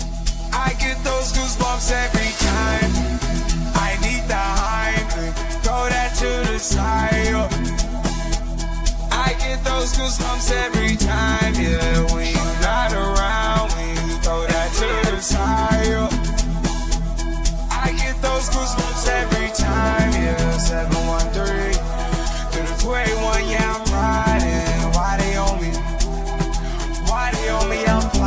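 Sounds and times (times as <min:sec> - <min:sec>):
amapiano beat: 0:00.0 - 0:28.2.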